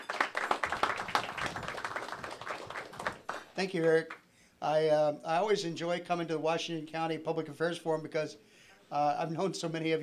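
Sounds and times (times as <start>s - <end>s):
audience applause: 0.0s - 3.5s
speech: 3.6s - 10.0s.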